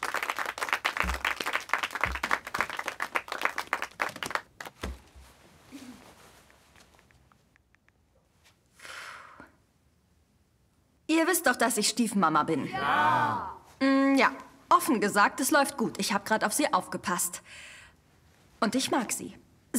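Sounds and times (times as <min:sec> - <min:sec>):
audience applause: 0:00.0 - 0:04.8
speech: 0:11.2 - 0:17.7, 0:18.6 - 0:19.7.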